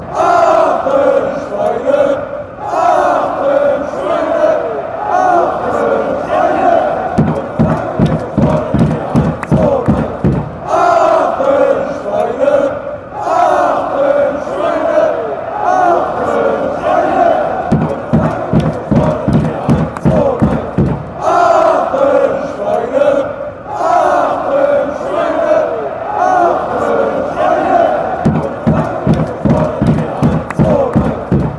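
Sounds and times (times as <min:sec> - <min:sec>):
fans chanting: 0:00.0 - 0:31.5.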